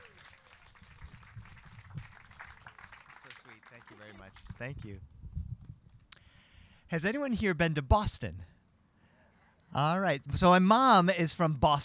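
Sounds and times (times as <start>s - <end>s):
audience clapping and cheering: 0.0s - 4.8s
speech: 3.9s - 5.1s, 6.9s - 8.5s, 9.8s - 11.8s.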